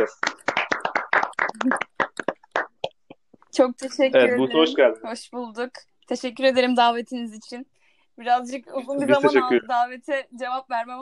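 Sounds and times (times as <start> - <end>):
speech: 0.0 - 0.3, 1.6 - 1.9, 3.6 - 11.0
clapping applause: 0.0 - 3.0.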